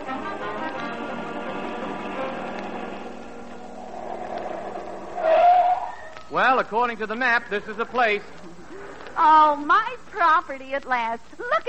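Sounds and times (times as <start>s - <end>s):
car driving off: 0.9s - 6.2s
speech: 6.3s - 11.6s.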